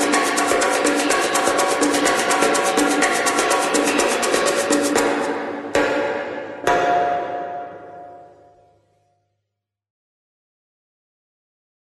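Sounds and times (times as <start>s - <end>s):
percussion: 0.0s - 9.1s.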